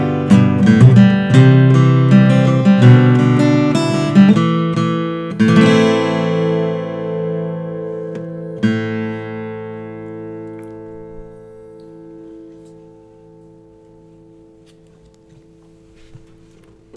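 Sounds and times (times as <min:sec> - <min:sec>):
Martin custom 00 45 12 fret Adirondack acoustic guitar: 0:00.0 - 0:16.9.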